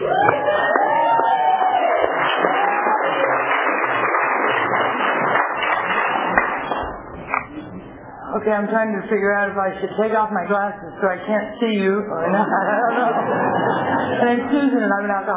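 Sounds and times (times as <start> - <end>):
audience at a Tulare County gathering cheering and applauding a speaker: 0.0 - 7.5
speech: 8.4 - 15.3
laughter: 12.1 - 14.7.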